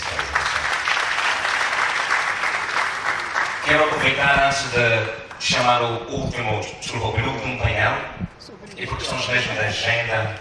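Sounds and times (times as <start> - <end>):
audience applauding: 0.0 - 5.4
speech: 3.7 - 8.2, 8.8 - 10.4.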